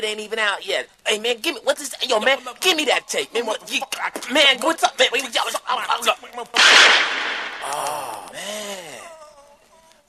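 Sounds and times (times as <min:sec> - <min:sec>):
speech: 0:00.0 - 0:08.5
gunshot sound effect in a comedy skit: 0:06.6 - 0:08.2.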